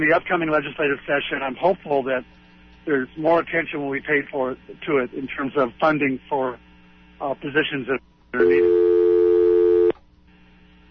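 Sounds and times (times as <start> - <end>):
speech: 0.0 - 6.6, 7.2 - 8.9
telephone line tone on a call-in phone line: 8.4 - 10.0.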